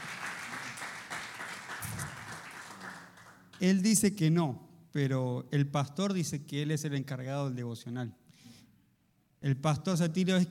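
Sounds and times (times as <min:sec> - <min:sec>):
crowd cheering: 0:00.0 - 0:03.1
crowd applauding: 0:00.0 - 0:03.6
speech: 0:03.6 - 0:08.2, 0:09.4 - 0:10.4.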